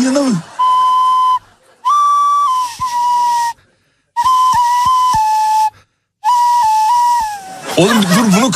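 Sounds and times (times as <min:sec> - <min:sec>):
speech: 0:00.0 - 0:00.5
laughter: 0:00.0 - 0:02.4, 0:07.3 - 0:08.5
tune whistled through nose: 0:00.5 - 0:03.6, 0:04.2 - 0:07.7.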